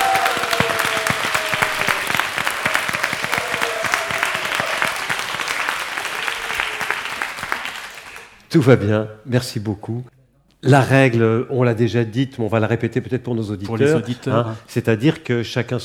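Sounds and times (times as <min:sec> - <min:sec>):
studio audience applauding: 0:00.0 - 0:08.4
speech: 0:08.6 - 0:15.8.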